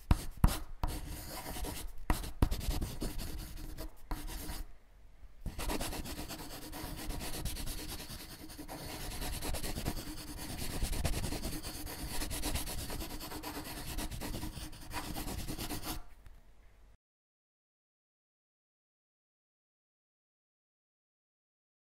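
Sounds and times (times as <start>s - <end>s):
pencil writing: 0.0s - 4.6s, 5.5s - 16.1s.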